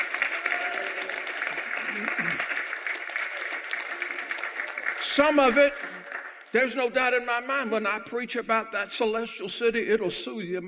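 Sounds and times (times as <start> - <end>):
audience hand clapping: 0.0 - 6.8
speech: 5.2 - 10.6.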